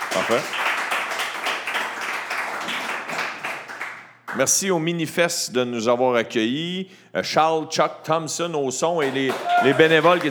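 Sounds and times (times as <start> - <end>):
audience applause: 0.0 - 4.4, 9.0 - 10.2
speech: 0.2 - 0.6, 4.4 - 10.2.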